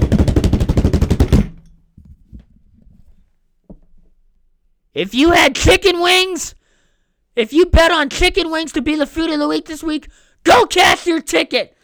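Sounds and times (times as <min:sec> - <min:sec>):
snare drum roll: 0:00.0 - 0:01.6
speech: 0:05.0 - 0:06.6, 0:07.4 - 0:11.8.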